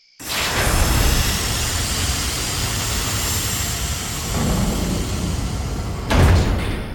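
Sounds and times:
heavy door set into a mountain grinding open: 0.2 - 6.9
heavy thud of a door: 4.4 - 6.9.

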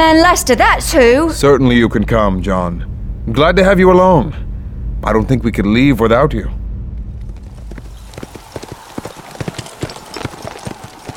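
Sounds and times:
speech: 0.0 - 6.6
horses' hooves clip-clopping while riding: 7.2 - 11.1.

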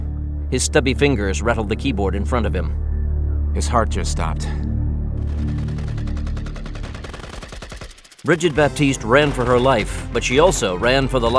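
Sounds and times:
speech: 0.5 - 2.9, 3.6 - 4.7, 8.2 - 11.3
gunfire from several weapons: 5.2 - 10.0.

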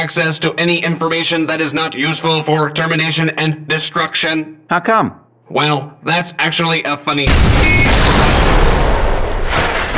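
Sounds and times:
speech: 0.0 - 8.9
gunshot with projectile tearing through a desk: 7.3 - 9.9.

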